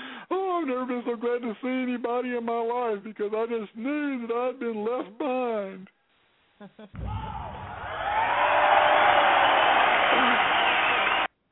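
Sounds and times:
speech: 0.6s - 6.0s, 6.6s - 7.6s
cheers and whoops: 7.0s - 11.3s
audience applause: 7.4s - 11.3s.

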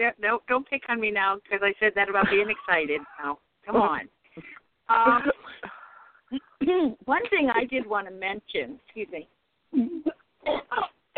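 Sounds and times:
speech: 0.0s - 11.1s
sneezes: 10.4s - 11.1s.

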